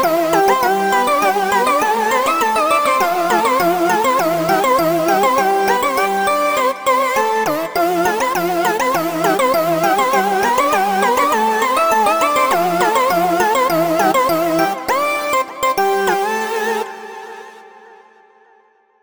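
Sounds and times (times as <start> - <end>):
synthesizer: 0.0 - 18.6.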